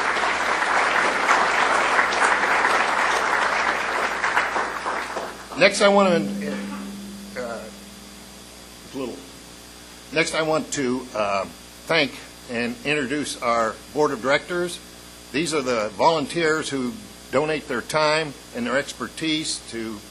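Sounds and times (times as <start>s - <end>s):
round of applause: 0.0s - 5.6s
speech: 5.6s - 6.7s, 10.2s - 20.0s.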